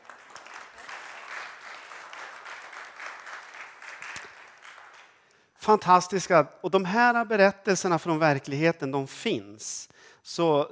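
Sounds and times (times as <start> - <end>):
spontaneous audience applause: 0.0 - 5.2
speech: 5.6 - 10.7.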